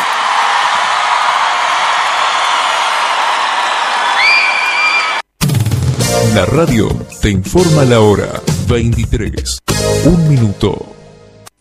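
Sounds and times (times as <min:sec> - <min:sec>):
crowd applause: 0:00.0 - 0:05.2
speech: 0:06.4 - 0:10.9.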